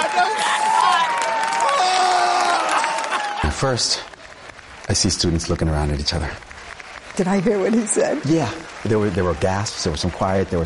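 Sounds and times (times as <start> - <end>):
audience cheering and applauding: 0.0 - 10.6
speech: 3.6 - 4.1, 4.9 - 6.5, 7.2 - 10.6.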